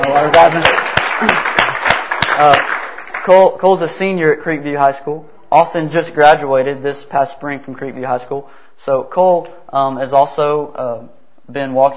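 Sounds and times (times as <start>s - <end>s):
audience clapping: 0.0s - 3.6s
speech: 0.1s - 1.5s, 2.4s - 11.9s.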